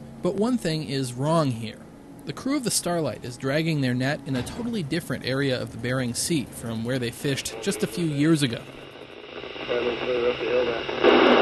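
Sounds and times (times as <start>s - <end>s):
speech: 0.2s - 8.8s, 9.7s - 11.2s
ship's radio chatter between fishing skippers: 7.0s - 11.3s.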